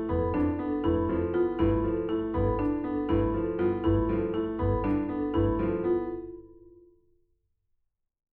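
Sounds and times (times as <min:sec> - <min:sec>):
marimba in nine-four time: 0:00.0 - 0:06.6.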